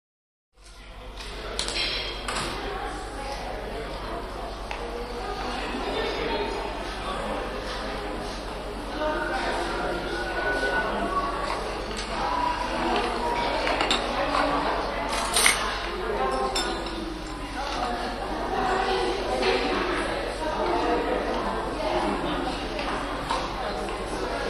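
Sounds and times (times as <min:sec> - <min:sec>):
light echoed chatter in a railway station restroom: 0:00.6 - 0:24.4.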